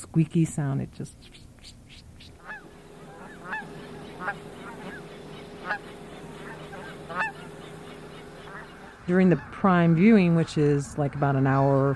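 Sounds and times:
speech: 0:00.2 - 0:01.8, 0:04.2 - 0:04.5, 0:09.1 - 0:11.9
geese honking as they fly in: 0:02.2 - 0:09.6.

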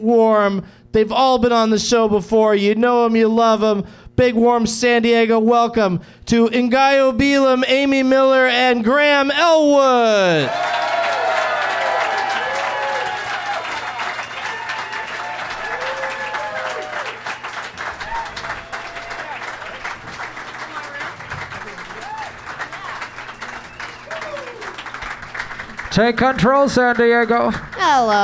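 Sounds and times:
speech: 0:00.0 - 0:10.8, 0:26.0 - 0:28.2
audience applause: 0:10.4 - 0:28.2.

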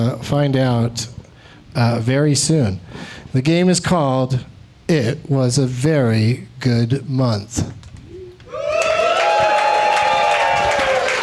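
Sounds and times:
speech: 0:00.0 - 0:01.2, 0:01.8 - 0:07.8
audience applauding: 0:08.5 - 0:11.2.

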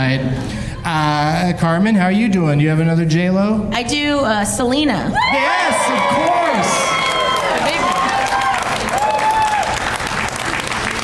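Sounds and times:
speech: 0:00.0 - 0:07.0
crowd applause: 0:05.3 - 0:11.0.

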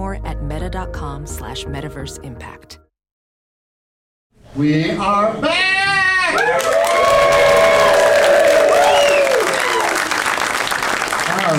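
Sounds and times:
speech: 0:00.2 - 0:02.8, 0:04.6 - 0:05.7
cheers and whoops: 0:05.8 - 0:10.3
crowd applause: 0:06.4 - 0:11.5.

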